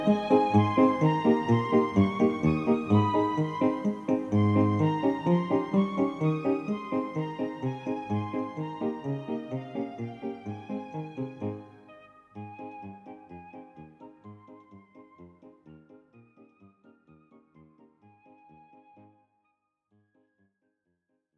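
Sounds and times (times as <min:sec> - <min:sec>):
cheerful flute playing: 0:00.0 - 0:15.8.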